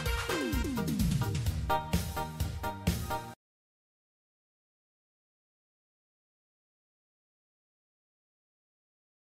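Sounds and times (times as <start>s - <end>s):
music beat: 0.0s - 3.4s.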